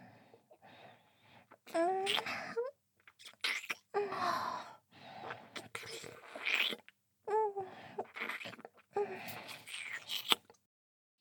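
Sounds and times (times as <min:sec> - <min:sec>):
oral sex sounds: 0:01.4 - 0:10.6
ear licking: 0:01.6 - 0:02.3, 0:03.0 - 0:03.9, 0:05.2 - 0:06.9, 0:08.0 - 0:10.5.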